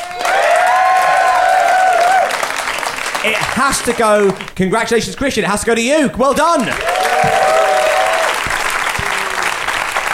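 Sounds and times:
audience whooping: 0:00.0 - 0:02.6, 0:06.8 - 0:10.1
audience applause: 0:00.0 - 0:04.6, 0:06.7 - 0:10.1
speech: 0:03.2 - 0:07.5.

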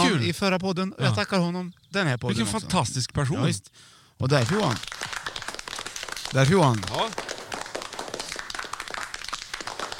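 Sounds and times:
speech: 0:00.1 - 0:04.9, 0:06.3 - 0:07.2
hand clapping: 0:04.3 - 0:09.9.

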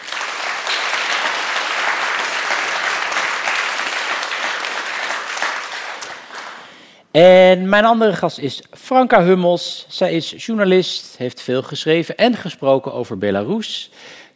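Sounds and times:
audience applause: 0:00.0 - 0:06.7
speech: 0:07.2 - 0:14.3.

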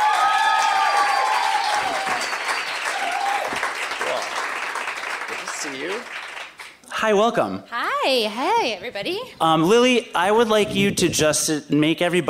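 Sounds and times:
audience cheering: 0:00.0 - 0:06.1
audience clapping as a guest comes onto a stage: 0:00.0 - 0:06.8
speech: 0:07.0 - 0:12.2.

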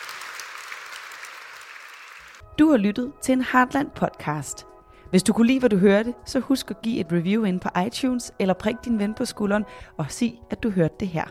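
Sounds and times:
crowd applauding: 0:00.0 - 0:02.4
speech: 0:02.6 - 0:11.2.

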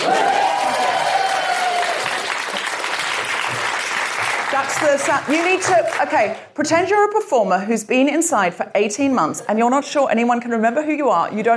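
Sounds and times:
whoops and cheers: 0:00.0 - 0:02.3
audience applause: 0:00.0 - 0:06.4
speech: 0:04.6 - 0:11.5.

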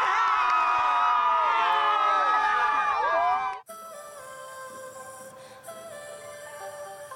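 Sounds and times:
crowds outside Brisbane Stadium celebrating the Matildas' World Cup finish: 0:00.0 - 0:03.7.

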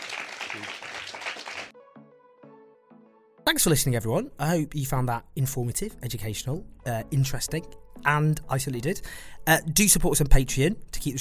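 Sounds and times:
applause: 0:00.0 - 0:01.8
speech: 0:00.6 - 0:00.8, 0:03.5 - 0:11.1.

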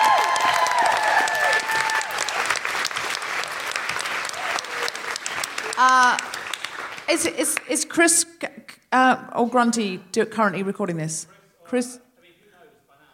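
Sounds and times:
crowd clapping and cheering: 0:00.0 - 0:07.8
speech: 0:07.1 - 0:12.0.

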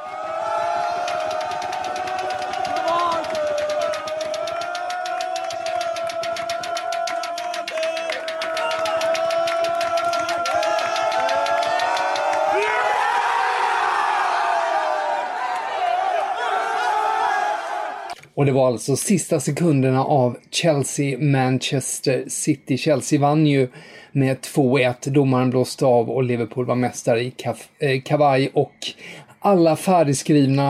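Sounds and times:
players cheering while watching final seconds: 0:00.0 - 0:18.2
speech: 0:18.4 - 0:30.6.

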